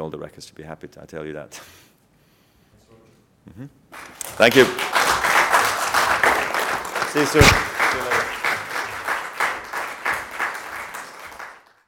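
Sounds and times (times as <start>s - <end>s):
speech: 0.0s - 1.9s, 3.4s - 5.3s, 7.1s - 8.3s
Laver Cup staff applauding on the sidelines: 3.9s - 11.8s.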